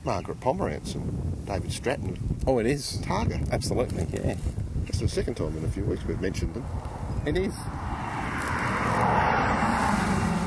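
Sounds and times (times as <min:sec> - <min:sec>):
speech: 0:00.0 - 0:07.8
HSV W427 car driving past: 0:06.6 - 0:10.4.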